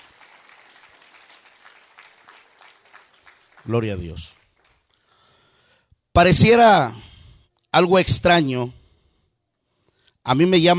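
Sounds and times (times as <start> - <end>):
small audience applause: 0.0 - 4.9
speech: 3.7 - 4.4, 6.2 - 7.1, 7.7 - 8.8, 10.3 - 10.7.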